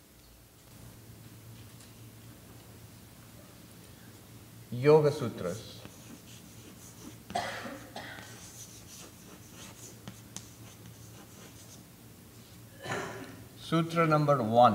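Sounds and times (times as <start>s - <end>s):
low steady hum: 0.0s - 14.7s
speech: 4.8s - 5.8s, 13.7s - 14.7s
pen scratching writing down a yoga sutra: 5.8s - 7.3s, 8.2s - 11.8s.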